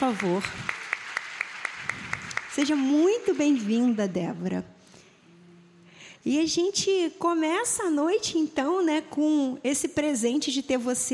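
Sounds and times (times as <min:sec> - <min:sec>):
speech: 0:00.0 - 0:00.8, 0:02.6 - 0:04.8, 0:06.2 - 0:11.1
audience clapping: 0:00.0 - 0:04.2.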